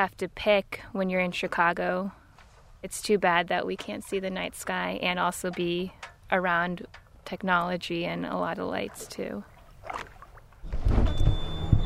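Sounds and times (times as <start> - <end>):
speech: 0.0 - 2.2, 2.8 - 10.1
boat motor starting at a Chicago marina: 3.3 - 11.8.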